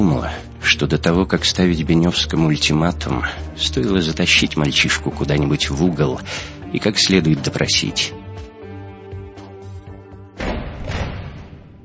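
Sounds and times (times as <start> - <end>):
speech: 0.0 - 8.2
soft rhythmic ticks: 4.4 - 4.9
door opening with a sudden heavy thud: 10.4 - 11.8.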